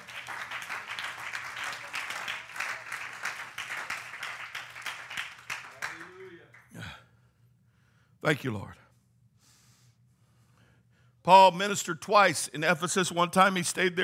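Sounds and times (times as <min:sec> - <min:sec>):
audience clapping: 0:00.0 - 0:06.8
speech: 0:08.2 - 0:08.8, 0:11.3 - 0:14.0.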